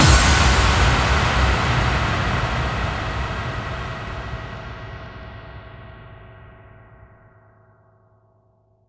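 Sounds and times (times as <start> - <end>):
bass drum FX kicks: 0.0 - 6.0.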